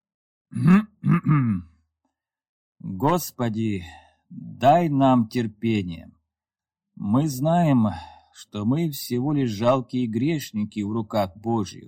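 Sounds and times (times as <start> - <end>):
speech: 0.5 - 1.7, 3.0 - 6.2, 7.0 - 11.8
man clearing throat: 0.6 - 1.7.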